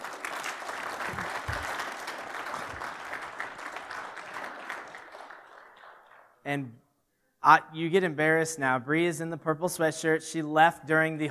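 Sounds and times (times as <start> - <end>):
audience applause: 0.0 - 6.4
speech: 6.5 - 6.8, 7.4 - 11.2.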